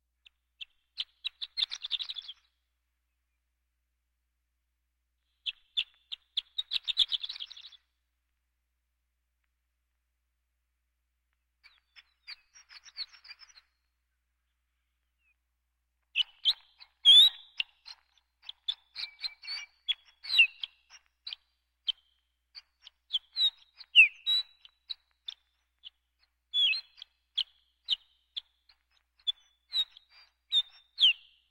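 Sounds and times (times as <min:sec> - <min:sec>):
birds: 0:00.2 - 0:02.6, 0:05.3 - 0:07.9, 0:11.6 - 0:15.4, 0:16.0 - 0:31.4.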